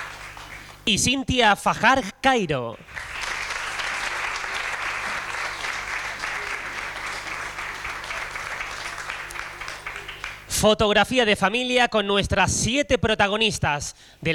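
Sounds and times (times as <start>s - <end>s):
audience applause: 0.0s - 0.8s, 2.8s - 10.5s
speech: 0.8s - 3.1s, 10.6s - 14.3s.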